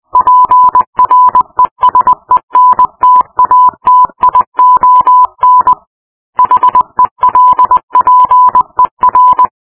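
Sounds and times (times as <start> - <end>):
morse code beeps: 0.1 - 9.5.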